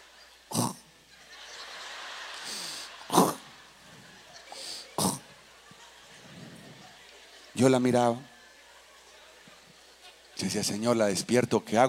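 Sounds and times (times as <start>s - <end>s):
voice imitating loud snoring: 0.5s - 0.8s, 3.1s - 3.4s, 5.0s - 5.2s
laughter: 1.0s - 10.7s
speech: 7.6s - 8.3s, 10.4s - 11.8s.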